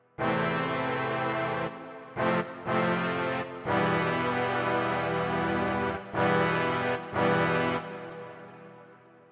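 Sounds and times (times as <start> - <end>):
horns: 0.2 - 9.1.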